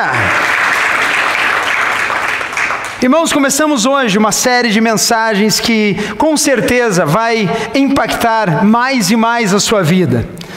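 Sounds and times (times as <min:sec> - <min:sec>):
audience applauding: 0:00.0 - 0:03.1
speech: 0:03.0 - 0:10.4.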